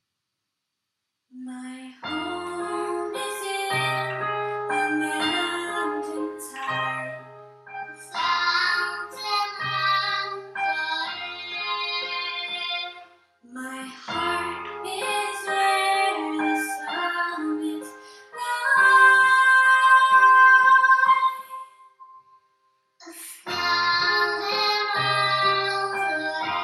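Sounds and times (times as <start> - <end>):
piano: 1.6 - 26.6.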